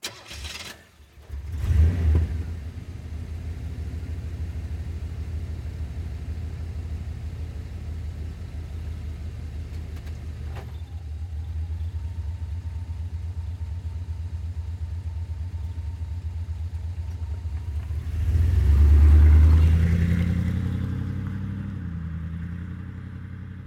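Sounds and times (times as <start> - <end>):
Chevrolet Camaro Z28 driving away slowly: 1.2 - 23.6.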